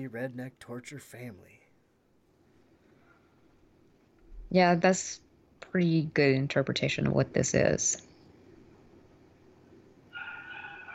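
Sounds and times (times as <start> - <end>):
speech: 0.0 - 1.6, 4.5 - 8.1
angry dog crying in the horror film The Cabin in the Woods: 10.1 - 10.9.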